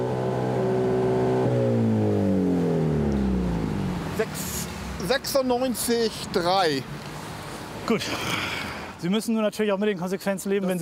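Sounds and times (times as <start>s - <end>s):
car engine revving with exhaust flap open: 0.0s - 6.3s
speech: 4.2s - 7.0s, 7.9s - 10.8s.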